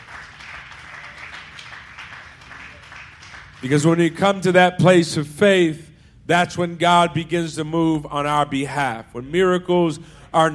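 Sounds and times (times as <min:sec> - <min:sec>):
audience clapping: 0:00.0 - 0:04.0
speech: 0:03.6 - 0:10.5.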